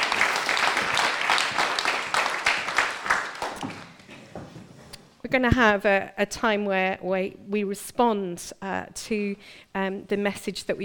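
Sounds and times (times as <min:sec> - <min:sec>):
audience applause: 0:00.0 - 0:03.8
speech: 0:05.3 - 0:10.8.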